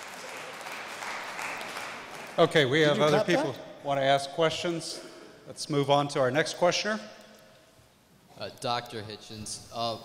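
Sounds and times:
audience clapping: 0.0 - 3.1
speech: 2.4 - 7.2, 8.4 - 10.0.

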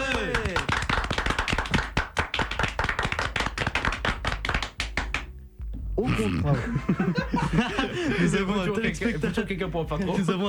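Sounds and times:
applause: 0.0 - 5.3
speech: 6.2 - 10.4
laughter: 6.3 - 9.4.

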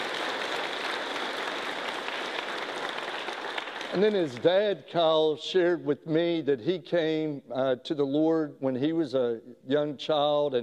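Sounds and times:
audience applause: 0.0 - 4.6
speech: 3.9 - 10.6.

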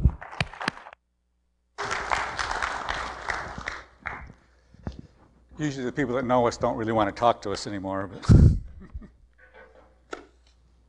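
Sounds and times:
church congregation applauding to welcome a guest: 1.8 - 4.4
speech: 5.6 - 8.6.

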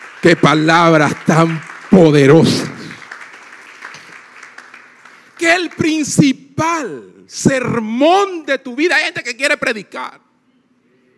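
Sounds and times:
audience applause in a large room: 0.0 - 5.9
speech: 0.2 - 2.8, 5.5 - 10.2.

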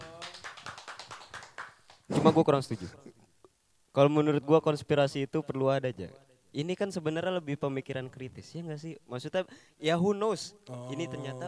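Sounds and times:
hands clapping: 0.0 - 2.2
speech: 2.2 - 3.2, 4.0 - 11.4.

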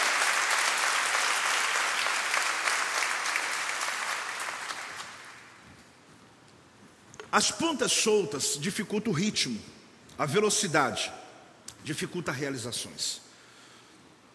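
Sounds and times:
audience applause: 0.0 - 5.5
speech: 7.3 - 11.2, 11.8 - 13.2.

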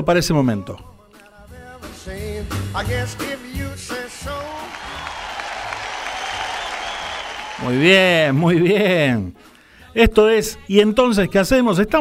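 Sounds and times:
speech: 0.0 - 0.9, 2.0 - 4.5, 7.6 - 11.9
applause sound effect: 3.9 - 8.4.

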